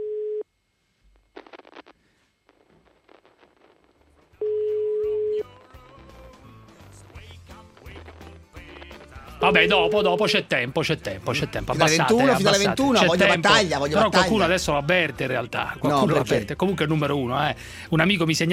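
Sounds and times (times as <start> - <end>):
telephone ringing tone on a call: 0.0 - 0.4, 4.4 - 5.5
speech: 9.5 - 18.5.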